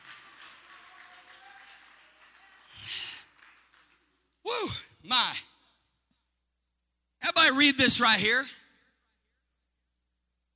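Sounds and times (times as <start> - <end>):
audience clapping hands: 0.0 - 4.4
speech: 7.6 - 8.6.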